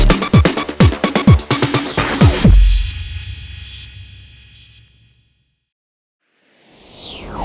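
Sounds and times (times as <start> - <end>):
modern energetic tech logo jingle for social media: 0.1 - 4.7.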